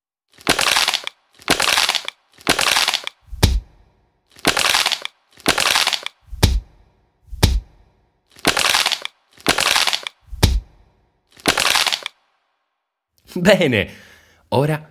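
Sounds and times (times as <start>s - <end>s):
plastic bag crumpling: 0.3s - 3.2s, 4.3s - 6.2s, 8.3s - 10.1s, 11.3s - 12.1s
foot on floor: 3.3s - 3.8s, 6.3s - 6.7s, 7.3s - 7.8s, 10.3s - 10.8s
speech: 13.4s - 14.8s.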